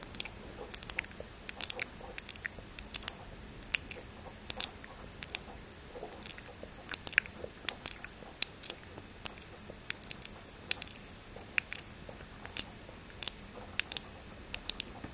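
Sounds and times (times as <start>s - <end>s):
intense wet mouth clicks and smacks: 0.0s - 15.0s
faint low hum: 0.0s - 15.1s.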